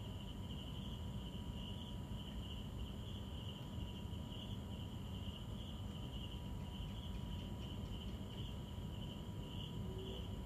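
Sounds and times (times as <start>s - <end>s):
insects trilling: 0.0s - 10.4s.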